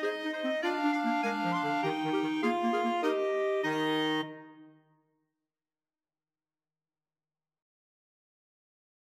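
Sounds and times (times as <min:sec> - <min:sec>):
clarinet choir playing: 0:00.0 - 0:04.8.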